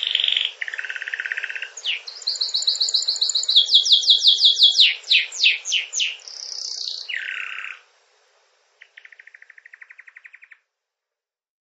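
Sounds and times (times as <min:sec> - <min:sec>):
canaries singing: 0:00.0 - 0:07.9, 0:08.8 - 0:10.6.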